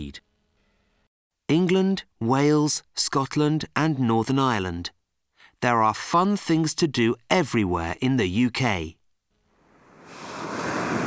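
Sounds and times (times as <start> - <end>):
speech: 1.5 - 5.0, 5.6 - 9.0
ocean surf off Cornwall in the south of England on a windy day: 9.6 - 11.0.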